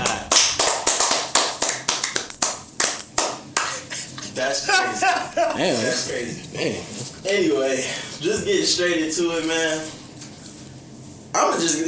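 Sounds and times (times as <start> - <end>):
hands clapping: 0.0 - 3.8
laughter: 3.6 - 7.3
speech: 5.6 - 10.0, 11.4 - 11.8.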